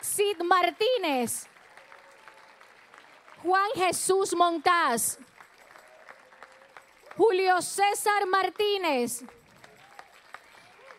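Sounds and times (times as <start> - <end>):
speech: 0.2 - 1.5, 3.4 - 5.3, 7.2 - 9.4
audience applause: 0.5 - 7.4, 9.2 - 10.9.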